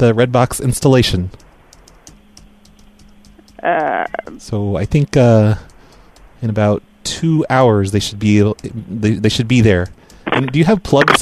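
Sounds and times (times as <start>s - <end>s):
speech: 0.0s - 1.4s, 3.6s - 5.7s, 6.4s - 11.2s
low hum: 0.0s - 11.2s
typing on a computer keyboard: 1.3s - 6.7s, 7.8s - 11.2s.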